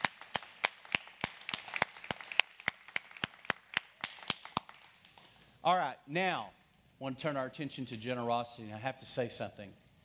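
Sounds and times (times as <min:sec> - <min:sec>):
audience hand clapping: 0:00.0 - 0:05.5
speech: 0:05.6 - 0:09.8.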